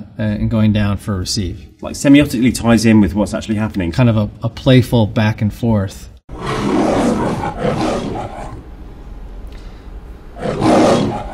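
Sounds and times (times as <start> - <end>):
speech: 0.2 - 6.8
MGM lion roaring: 6.3 - 8.7, 10.3 - 11.3.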